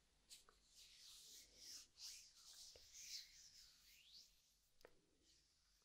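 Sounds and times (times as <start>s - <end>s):
ear massage rubbing and brushing: 0.3s - 5.8s.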